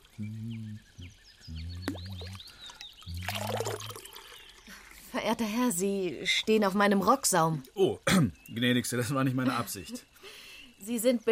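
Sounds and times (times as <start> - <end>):
croaking tones: 0.0 - 2.5, 3.1 - 4.1
birds chirping: 0.0 - 11.3
speech: 0.2 - 0.9, 5.2 - 11.3
water ladled into a drinking cup: 1.8 - 4.7.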